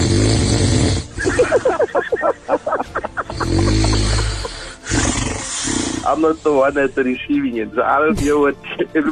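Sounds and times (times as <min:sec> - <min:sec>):
loud human snoring: 0:00.0 - 0:01.4, 0:03.2 - 0:06.4
laughter: 0:01.2 - 0:04.7
speech: 0:06.1 - 0:09.1.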